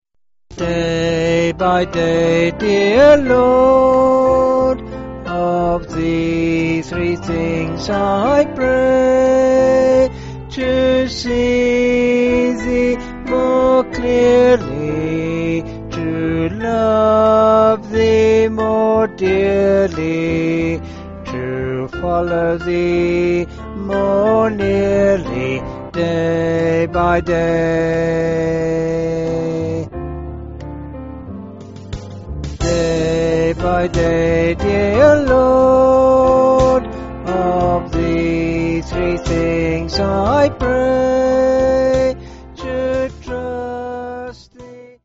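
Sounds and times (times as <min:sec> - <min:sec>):
person singing: 0:00.5 - 0:29.9, 0:32.6 - 0:45.0.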